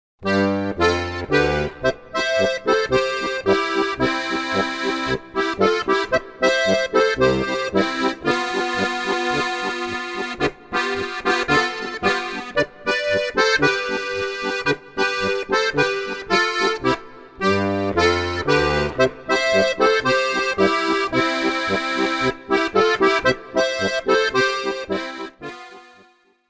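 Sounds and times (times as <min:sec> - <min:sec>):
polka music: 0:00.2 - 0:26.3.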